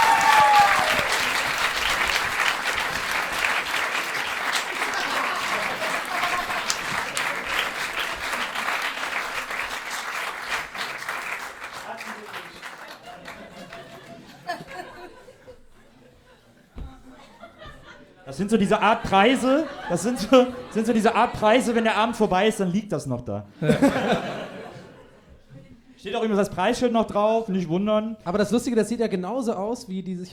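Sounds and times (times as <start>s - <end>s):
laughter: 0.0s - 9.6s, 11.9s - 22.4s, 23.5s - 25.8s
audience applause: 0.0s - 14.6s
speech: 18.4s - 24.4s, 26.2s - 30.3s.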